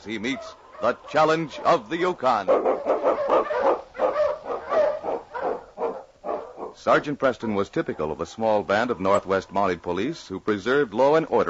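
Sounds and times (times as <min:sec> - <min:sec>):
speech: 0:00.0 - 0:03.9, 0:06.8 - 0:11.4
husky sled dogs barking: 0:00.0 - 0:09.5.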